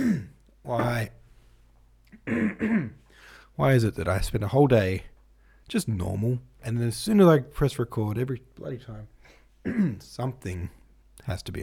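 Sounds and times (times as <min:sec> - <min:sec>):
throat clearing by a speaker with a frog in the throat: 0:00.0 - 0:01.1, 0:02.1 - 0:03.1, 0:09.6 - 0:10.1
speech: 0:00.7 - 0:01.2, 0:02.3 - 0:03.0, 0:03.6 - 0:05.1, 0:05.7 - 0:11.6.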